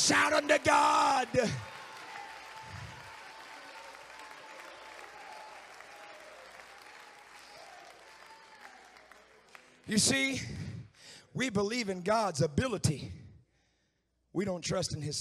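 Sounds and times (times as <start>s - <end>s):
audience clapping: 0.0s - 10.9s
speech: 0.1s - 1.7s, 9.9s - 10.7s, 11.3s - 13.2s, 14.3s - 15.1s.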